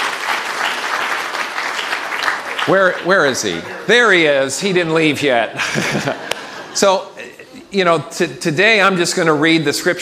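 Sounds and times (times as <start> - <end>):
audience applause: 0.0 - 4.0
speech: 2.7 - 10.0
laughter: 5.3 - 7.8.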